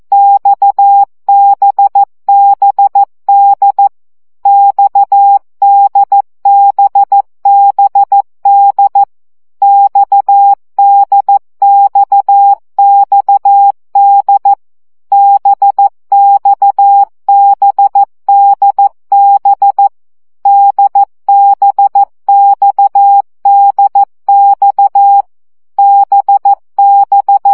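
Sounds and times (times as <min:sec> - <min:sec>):
morse code CW practice beeps at 12 baud: 0:00.1 - 0:03.9, 0:04.5 - 0:19.9, 0:20.5 - 0:27.5.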